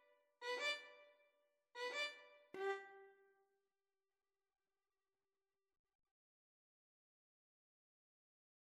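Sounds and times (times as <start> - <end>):
violin duet: 2.6 - 2.8.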